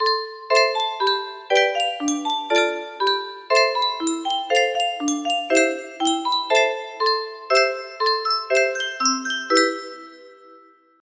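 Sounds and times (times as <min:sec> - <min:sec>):
music box: 0:00.0 - 0:11.0.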